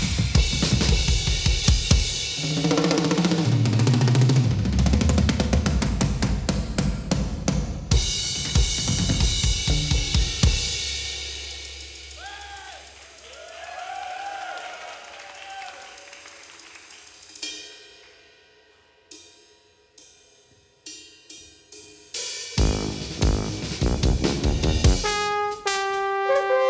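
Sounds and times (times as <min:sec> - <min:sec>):
drums: 0:00.0 - 0:14.4, 0:16.7 - 0:26.6
brass: 0:22.6 - 0:26.6.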